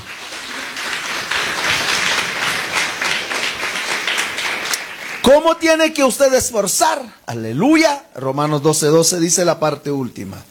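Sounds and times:
small group of people clapping: 0.0s - 6.8s
speech: 5.3s - 10.4s.

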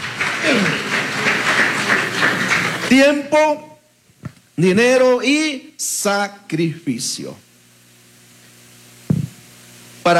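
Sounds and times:
crowd clapping: 0.0s - 3.4s
vocal cheer: 0.3s - 1.0s
speech: 2.9s - 3.7s, 4.6s - 7.5s.

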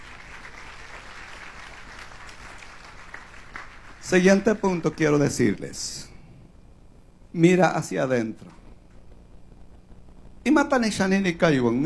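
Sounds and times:
audience applauding: 0.0s - 5.1s
speech: 4.1s - 6.1s, 7.4s - 8.6s, 10.5s - 11.8s.

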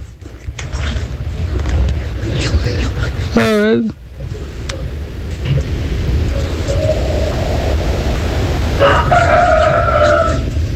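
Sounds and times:
hiss: 0.0s - 10.7s
speech: 3.4s - 4.0s
faint tonal wail: 5.6s - 10.7s
rooster crowing: 6.4s - 10.7s.

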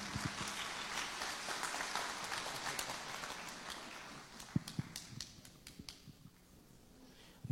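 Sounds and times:
audience applauding: 0.0s - 6.0s.

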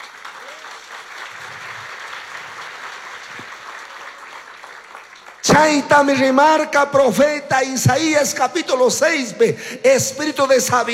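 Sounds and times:
crowd applauding: 0.0s - 6.1s
speech: 5.5s - 10.9s.

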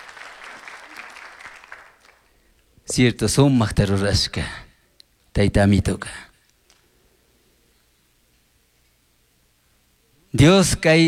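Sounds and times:
audience applause: 0.0s - 2.3s
speech: 2.9s - 4.6s, 5.4s - 6.3s, 10.3s - 11.0s.

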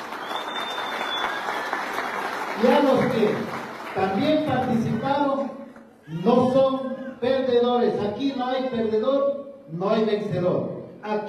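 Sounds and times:
crowd applause: 0.0s - 5.0s
speech: 2.6s - 11.2s.

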